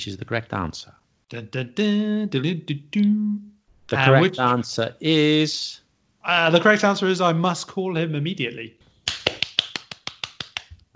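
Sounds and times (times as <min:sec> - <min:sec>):
speech: 0:00.0 - 0:09.2
hand clapping: 0:09.0 - 0:10.8.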